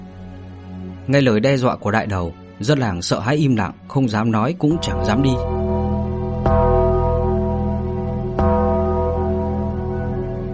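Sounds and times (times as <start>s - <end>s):
speech: 1.1s - 5.6s
gong being struck: 4.8s - 10.5s.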